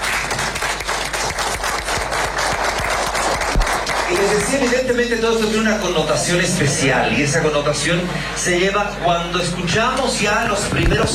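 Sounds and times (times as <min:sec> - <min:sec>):
audience applause: 0:00.0 - 0:05.6
speech: 0:04.2 - 0:11.1.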